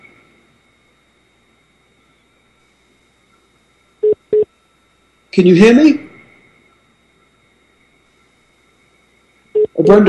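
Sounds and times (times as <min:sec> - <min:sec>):
little beep on phone line: 0:04.0 - 0:04.5, 0:09.6 - 0:10.0
speech: 0:05.3 - 0:06.0, 0:09.9 - 0:10.0.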